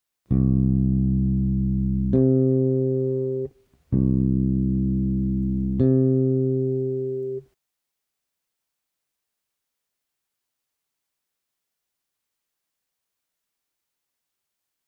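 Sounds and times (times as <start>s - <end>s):
pure octave tone: 0.3s - 7.5s.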